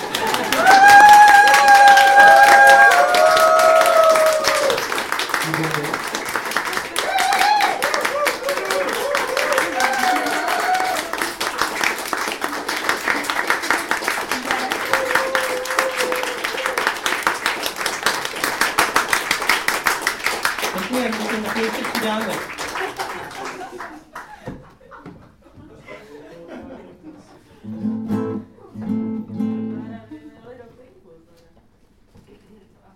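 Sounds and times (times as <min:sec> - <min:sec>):
laughter: 0:00.0 - 0:00.9, 0:05.3 - 0:07.2, 0:21.6 - 0:27.7
audience applause: 0:00.0 - 0:24.5.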